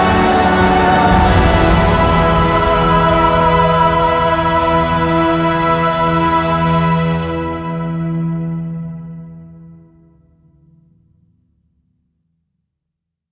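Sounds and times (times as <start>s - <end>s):
bold heroic background music: 0.0s - 8.2s.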